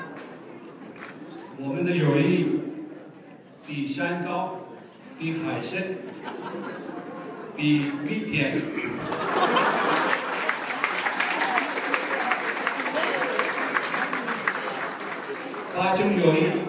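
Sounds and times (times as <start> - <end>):
speech: 1.6 - 2.7, 3.7 - 4.6, 5.2 - 7.0, 7.6 - 10.1, 15.8 - 16.6
laughter: 6.0 - 16.2
warm applause from guests: 9.0 - 16.6.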